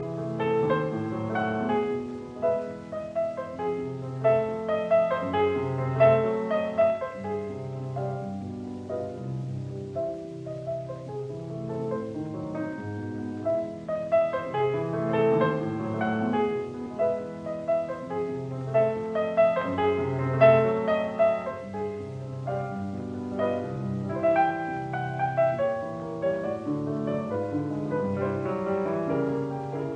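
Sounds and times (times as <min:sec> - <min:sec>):
piano pieces, intermezzo and capriccio: 0:00.0 - 0:29.9.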